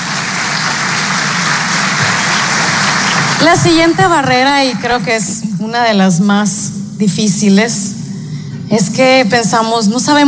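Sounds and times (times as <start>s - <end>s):
crowd audience applause: 0.0s - 4.3s
speech: 3.4s - 7.8s, 8.7s - 10.2s.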